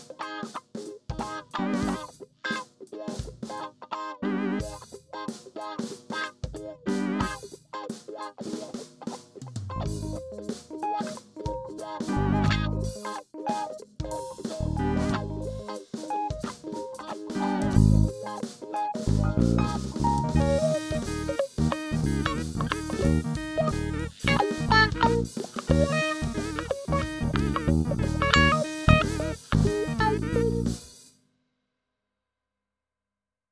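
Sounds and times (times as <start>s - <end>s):
grocery funk music: 0.2s - 2.2s, 4.6s - 7.6s, 9.4s - 30.9s.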